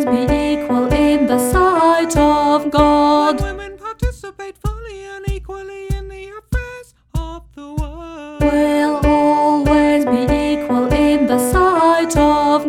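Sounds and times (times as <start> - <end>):
choral music: 0.0 - 3.8, 8.4 - 12.6
alto singing: 0.0 - 4.5, 8.0 - 12.6.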